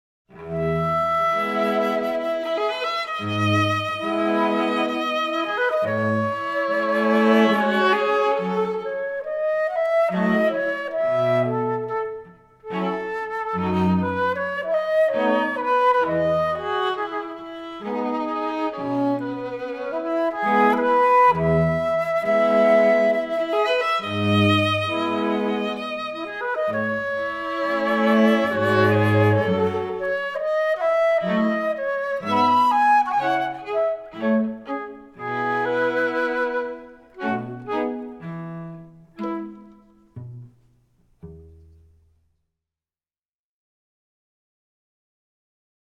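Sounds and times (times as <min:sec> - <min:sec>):
waltz: 0:00.4 - 0:09.3, 0:09.9 - 0:40.6.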